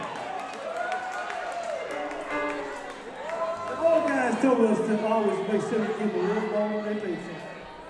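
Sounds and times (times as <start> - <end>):
audience applause: 0.0 - 4.4
speech: 4.4 - 7.5.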